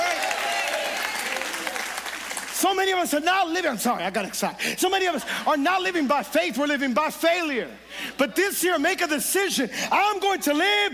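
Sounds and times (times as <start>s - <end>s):
audience applauding: 0.0s - 2.6s
speech: 2.6s - 10.9s.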